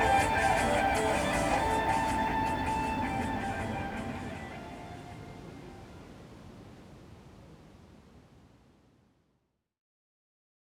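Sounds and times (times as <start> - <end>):
laptop music: 0.0 - 5.8.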